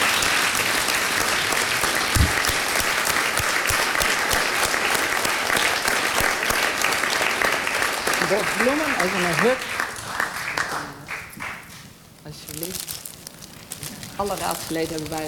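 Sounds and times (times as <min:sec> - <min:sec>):
applause in council chamber: 0:00.0 - 0:11.8
speech: 0:08.6 - 0:09.8, 0:14.2 - 0:15.2.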